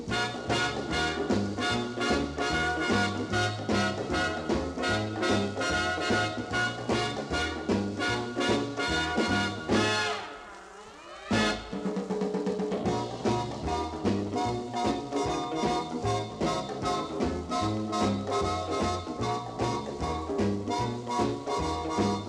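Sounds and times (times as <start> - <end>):
trumpet: 0.1 - 12.2, 13.2 - 22.2.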